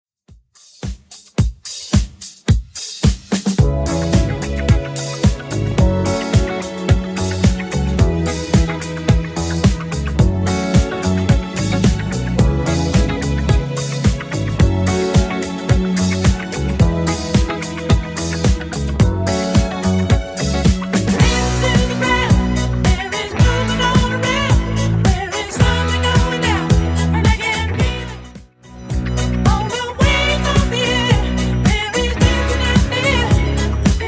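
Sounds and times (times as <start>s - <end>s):
70s style music at 109 bpm: 0.6s - 34.0s.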